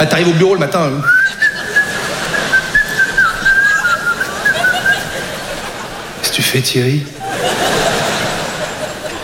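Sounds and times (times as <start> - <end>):
speech: 0.0 - 1.5, 6.5 - 7.2
person whistling a tune: 1.0 - 4.9
laughter: 1.0 - 9.2.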